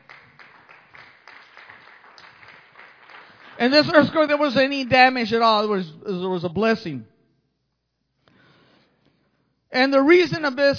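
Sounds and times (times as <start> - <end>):
applause: 0.0 - 4.3
speech: 3.6 - 7.1, 9.8 - 10.7.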